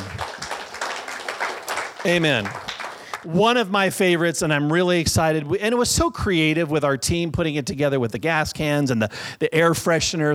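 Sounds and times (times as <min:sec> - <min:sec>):
crowd applauding: 0:00.0 - 0:03.4
speech: 0:02.0 - 0:02.6, 0:03.2 - 0:10.3.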